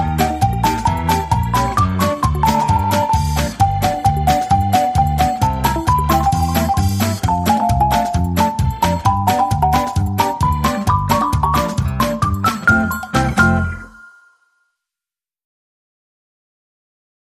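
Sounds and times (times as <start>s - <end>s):
fast cartoon sound: 0.3s - 13.9s.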